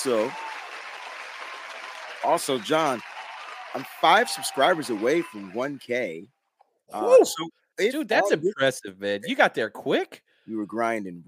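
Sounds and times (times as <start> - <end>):
speech: 0.0 - 0.5, 2.2 - 3.1, 3.7 - 11.2
round of applause: 0.0 - 6.2.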